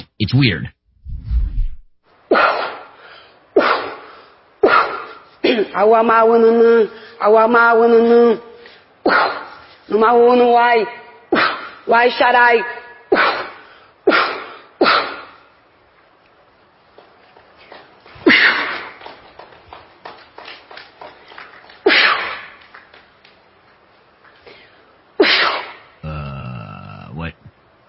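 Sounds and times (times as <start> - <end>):
speech: 0.2 - 0.8, 5.6 - 9.2, 9.9 - 11.0, 11.9 - 12.8
woman sneezing: 2.3 - 2.9, 3.6 - 5.8, 9.0 - 9.6, 13.1 - 15.4, 18.3 - 18.9, 21.9 - 22.5, 25.2 - 25.9.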